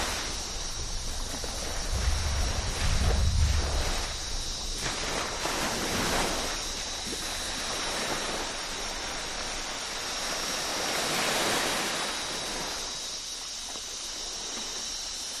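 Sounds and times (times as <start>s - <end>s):
insects: 0.0s - 15.3s
ocean waves on a tropical beach: 0.0s - 15.3s
distant thunderstorm: 0.6s - 6.4s.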